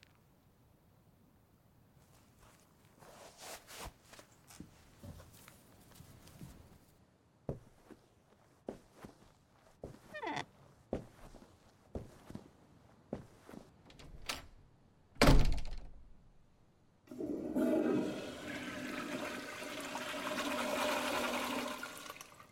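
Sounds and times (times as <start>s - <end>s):
soft thuds and footsteps: 2.0s - 13.9s
toilet flushing in a bathroom: 17.1s - 22.5s.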